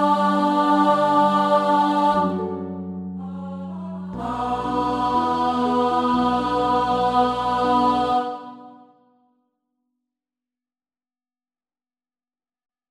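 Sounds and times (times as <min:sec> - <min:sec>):
alto voices singing: 0:00.0 - 0:08.9.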